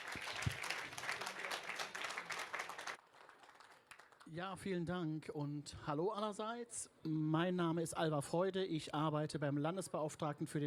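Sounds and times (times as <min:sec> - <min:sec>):
audience applause: 0:00.0 - 0:04.2
speech: 0:04.3 - 0:10.6.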